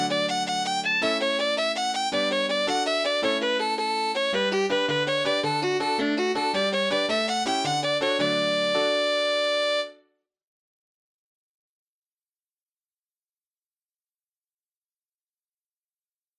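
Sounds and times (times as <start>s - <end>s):
jig set: 0.0s - 9.9s.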